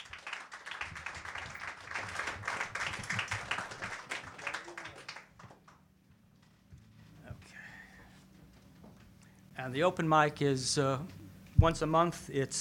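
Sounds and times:
open mic audience clapping for a poet: 0.0 - 5.9
speech: 9.6 - 12.5.

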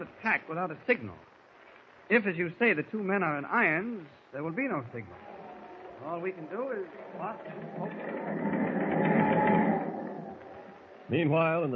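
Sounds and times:
speech: 0.0 - 1.3, 2.1 - 5.3, 6.0 - 8.6, 11.1 - 11.7
ship's engine running: 4.4 - 11.1.

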